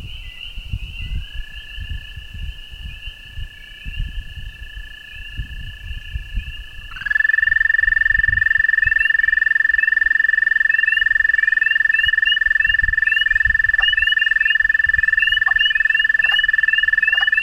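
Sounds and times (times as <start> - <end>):
wood frog calling: 2.9 - 17.4
peepers calling: 6.4 - 17.4.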